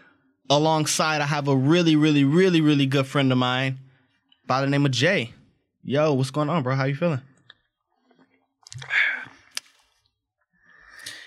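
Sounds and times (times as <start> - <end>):
speech: 0.5 - 3.8, 4.5 - 7.3
person sipping a drink: 7.4 - 11.2.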